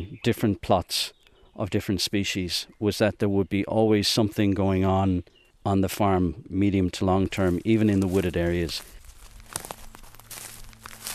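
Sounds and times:
speech: 0:00.0 - 0:09.7
footsteps crunching through a farm field: 0:07.1 - 0:11.1
soft scuffs and rustles: 0:07.3 - 0:11.1.

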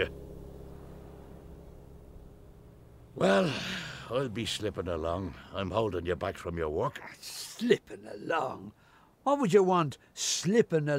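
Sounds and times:
cars passing in the street: 0:00.0 - 0:08.6
speech: 0:03.2 - 0:10.9.

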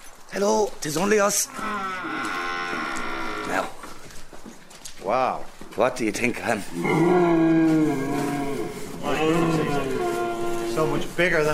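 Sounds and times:
speech: 0:00.4 - 0:03.7, 0:05.0 - 0:08.2, 0:09.1 - 0:09.9, 0:10.8 - 0:11.5
reindeer grunting: 0:01.4 - 0:03.8, 0:06.6 - 0:11.1.

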